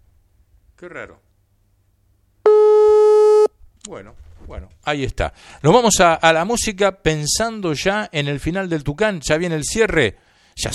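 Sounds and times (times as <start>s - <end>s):
speech: 0.8s - 1.3s, 3.9s - 10.7s
telephone busy signal: 2.5s - 3.5s.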